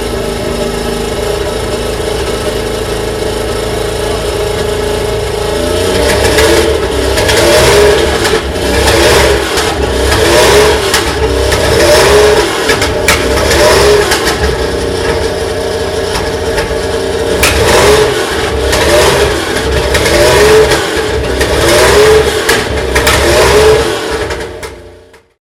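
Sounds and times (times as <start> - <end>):
1978 Porsche 911 SC Safari engine: 0.0 - 25.4.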